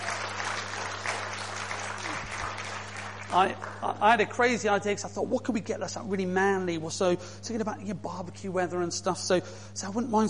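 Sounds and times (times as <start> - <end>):
audience applause: 0.0 - 4.0
speech: 3.3 - 10.2.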